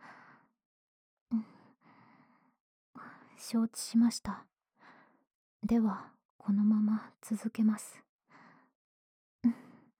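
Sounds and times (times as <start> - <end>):
quiet breathing: 0.0 - 0.5, 1.3 - 3.4, 4.8 - 5.3, 8.3 - 8.8
speech: 3.4 - 4.5, 5.6 - 8.1, 9.4 - 9.6.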